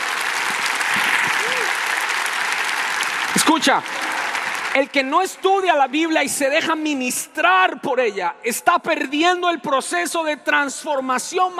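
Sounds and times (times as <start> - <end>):
audience applause: 0.0 - 6.4
speech: 3.4 - 4.0, 4.7 - 11.5.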